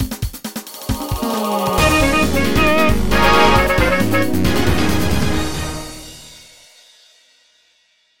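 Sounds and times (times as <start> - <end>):
zone clear jingle: 0.9 - 6.3.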